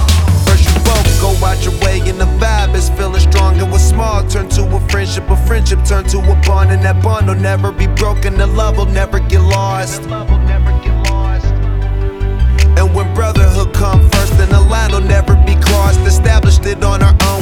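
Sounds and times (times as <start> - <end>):
mainstream rap: 0.0 - 11.8, 12.6 - 17.3.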